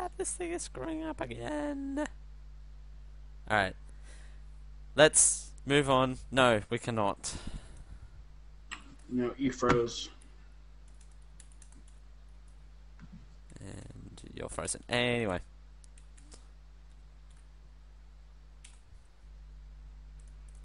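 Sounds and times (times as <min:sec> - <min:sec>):
speech: 0:00.2 - 0:02.2, 0:03.5 - 0:03.8, 0:04.9 - 0:07.5, 0:09.1 - 0:10.1, 0:14.4 - 0:15.5
typing: 0:10.9 - 0:12.0.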